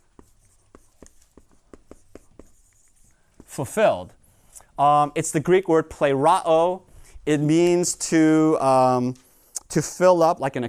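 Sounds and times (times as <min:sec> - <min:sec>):
writing by hand: 0:00.0 - 0:04.5
speech: 0:03.6 - 0:04.2, 0:04.8 - 0:10.6.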